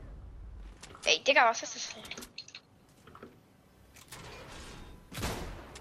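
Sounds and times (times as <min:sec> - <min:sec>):
speech: 0:01.2 - 0:02.3
gunshot fired by accident in a video game: 0:05.1 - 0:05.8.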